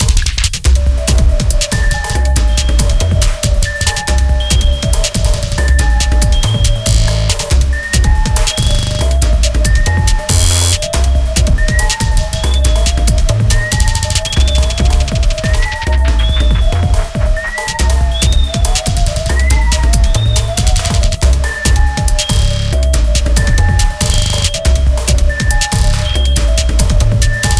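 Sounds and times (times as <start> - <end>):
rainsticks: 0.2 - 27.5.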